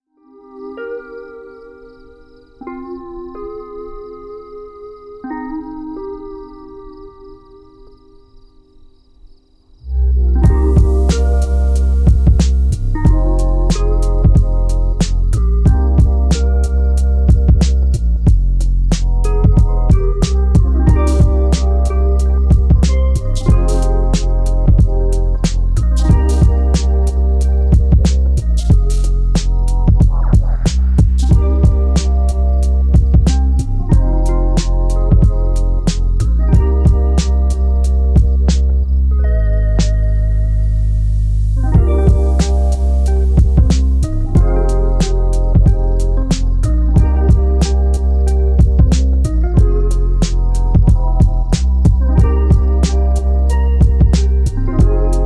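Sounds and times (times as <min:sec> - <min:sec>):
chill instrumental beats: 0:00.2 - 0:08.4, 0:09.8 - 0:55.2.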